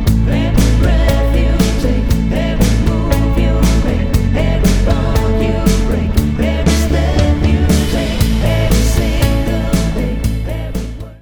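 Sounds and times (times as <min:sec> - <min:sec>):
person singing: 0:00.2 - 0:11.1.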